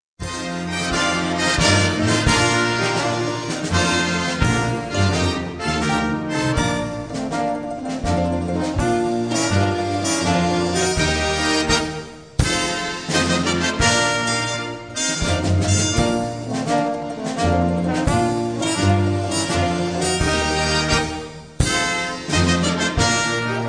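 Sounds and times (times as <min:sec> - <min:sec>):
instrumental music: 0:00.2 - 0:23.6.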